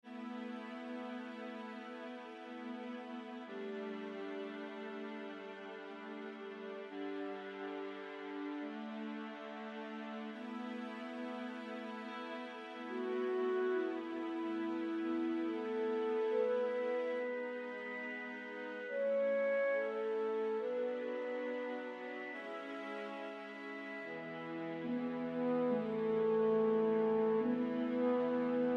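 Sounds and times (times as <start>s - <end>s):
emotional bittersweet music: 0.1s - 28.7s.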